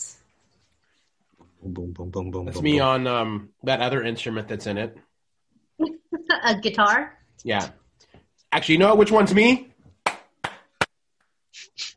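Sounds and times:
speech: 1.6 - 5.1, 5.8 - 7.8, 8.5 - 9.7
hand clapping in a music track: 10.0 - 10.9.

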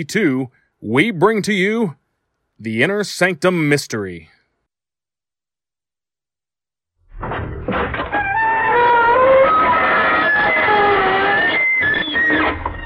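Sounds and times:
speech: 0.0 - 2.0, 2.6 - 4.4
door creaking: 7.0 - 12.8.

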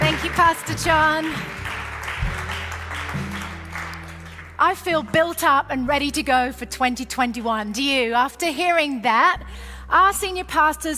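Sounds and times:
congregation applauding to welcome a preacher: 0.0 - 4.6
speech: 0.4 - 1.6, 4.6 - 10.9.

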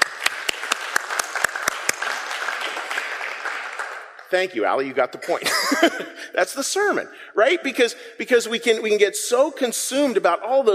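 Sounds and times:
audience applause: 0.0 - 4.3
speech: 4.3 - 10.7
laughter: 5.2 - 6.3.

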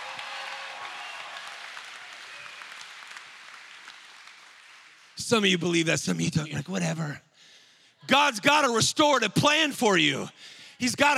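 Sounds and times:
audience clapping: 0.0 - 6.4
speech: 5.2 - 7.3, 8.0 - 11.1.

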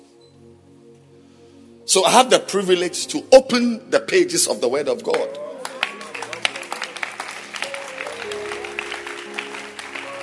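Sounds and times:
speech: 1.9 - 5.5
audience hand clapping: 5.1 - 10.2.

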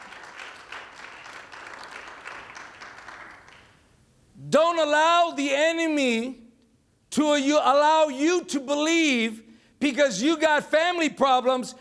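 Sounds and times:
audience applause: 0.0 - 3.8
speech: 4.4 - 6.4, 7.2 - 11.7.

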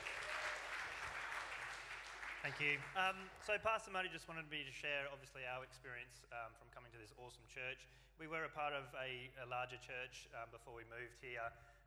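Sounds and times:
church audience clapping: 0.0 - 3.9
speech: 2.4 - 11.7.

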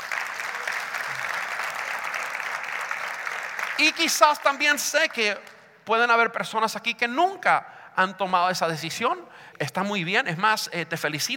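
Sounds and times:
audience applause: 0.0 - 4.7
speech: 3.8 - 11.3.

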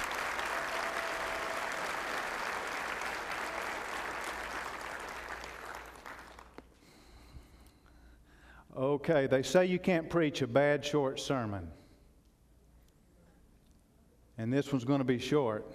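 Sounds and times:
audience clapping: 0.0 - 6.8
speech: 8.8 - 11.8, 14.4 - 15.7.

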